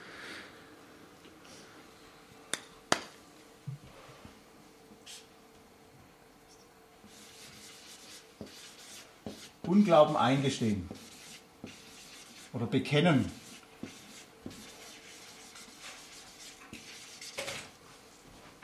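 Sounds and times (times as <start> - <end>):
handwriting strokes: 7.1 - 12.6, 13.2 - 17.5
speech: 9.7 - 11.0, 12.7 - 13.4.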